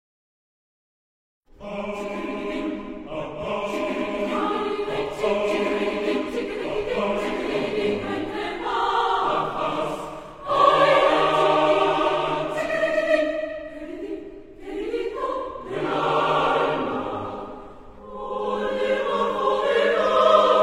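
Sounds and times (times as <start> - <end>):
choir singing: 1.5 - 20.6.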